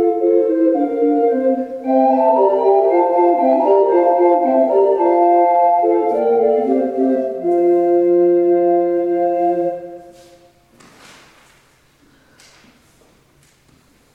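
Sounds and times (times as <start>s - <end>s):
gemshorn playing: 0.0s - 10.6s.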